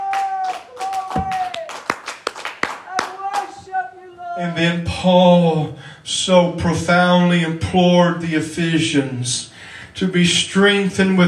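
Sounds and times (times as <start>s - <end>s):
audience clapping hands: 0.0s - 3.6s
speech: 4.4s - 11.2s.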